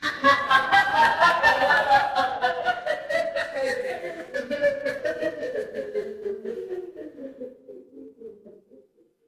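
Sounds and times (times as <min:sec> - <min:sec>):
crowd laughing: 0:00.0 - 0:07.7.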